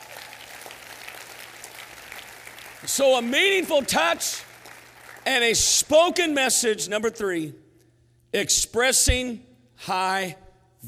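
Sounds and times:
audience clapping: 0.0s - 5.8s
speech: 2.8s - 4.5s, 5.3s - 7.6s, 8.3s - 10.8s.

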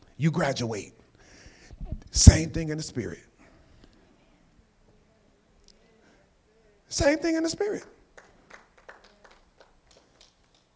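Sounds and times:
speech: 0.2s - 1.0s, 2.2s - 3.3s, 6.9s - 8.0s
scattered quiet audience claps: 8.1s - 10.7s.

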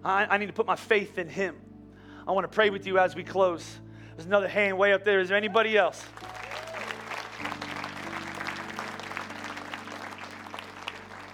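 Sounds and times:
speech: 0.0s - 1.7s, 2.3s - 6.4s
audience applauding: 6.0s - 11.3s.

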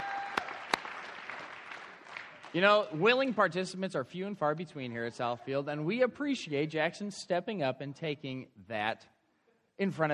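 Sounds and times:
audience applause: 0.0s - 2.9s
speech: 2.5s - 9.1s, 9.8s - 10.1s.

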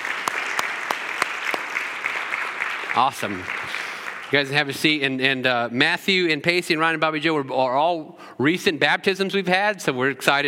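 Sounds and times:
church congregation clapping to welcome new members: 0.0s - 5.2s
speech: 3.0s - 10.4s.

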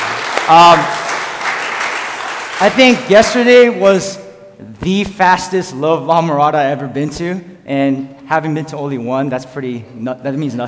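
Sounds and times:
audience applause: 0.0s - 3.0s
speech: 0.5s - 1.0s, 2.6s - 10.6s.

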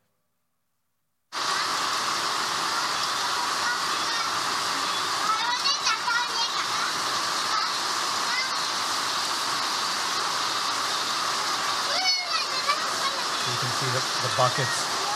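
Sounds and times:
heavy rainstorm leaking into a shanty in the rainy season: 1.3s - 15.1s
speech: 13.8s - 14.9s.

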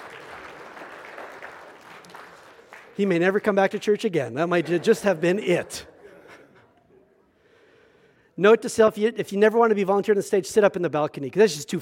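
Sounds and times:
audience applause: 0.0s - 3.9s
speech: 3.0s - 5.9s, 8.4s - 11.8s.

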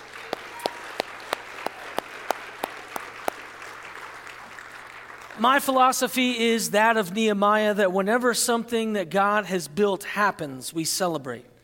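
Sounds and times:
round of applause: 0.0s - 5.8s
speech: 5.4s - 11.5s.

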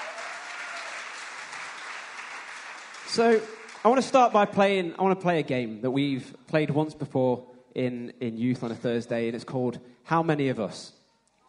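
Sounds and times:
audience applause: 0.0s - 4.3s
speech: 3.1s - 11.0s.

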